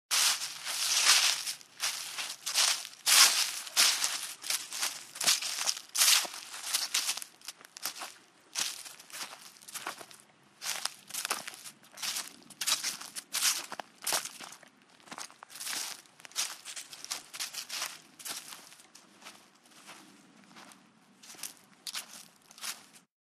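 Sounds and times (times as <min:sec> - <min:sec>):
footsteps on leaves: 0:00.1 - 0:23.1.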